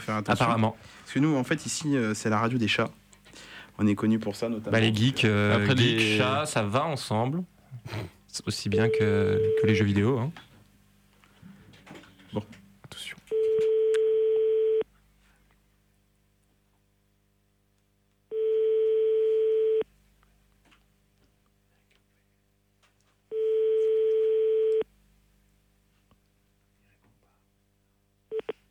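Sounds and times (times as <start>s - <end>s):
speech: 0.0s - 3.0s, 3.8s - 10.5s, 12.3s - 12.6s
telephone ringback tone on an unanswered call: 8.8s - 9.8s, 13.3s - 14.8s, 18.3s - 19.8s, 23.3s - 24.8s.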